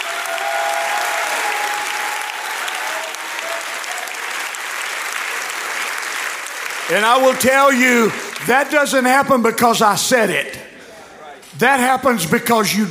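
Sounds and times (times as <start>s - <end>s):
audience clapping hands: 0.0s - 9.1s
speech: 6.9s - 10.7s, 11.5s - 12.8s.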